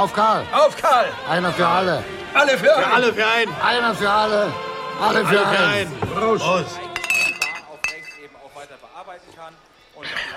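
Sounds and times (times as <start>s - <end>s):
speech: 0.0s - 6.9s
glasses clinking in a toast: 6.9s - 8.5s.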